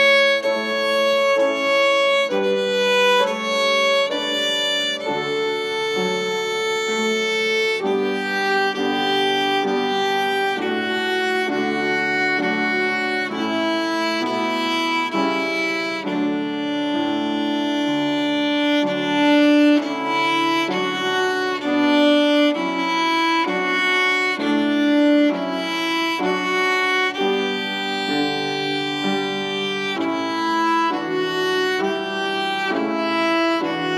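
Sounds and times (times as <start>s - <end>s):
French folk song with piano: 0.0s - 33.9s.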